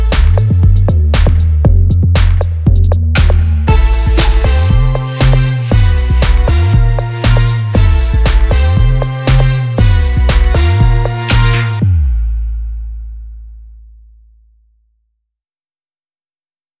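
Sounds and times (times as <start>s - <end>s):
instrumental music: 0.0s - 12.0s.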